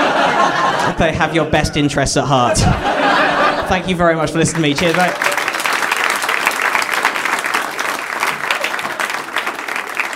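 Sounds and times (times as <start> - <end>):
laughter: 0.0 - 5.7
speech: 1.0 - 5.3
audience applause: 4.4 - 10.1.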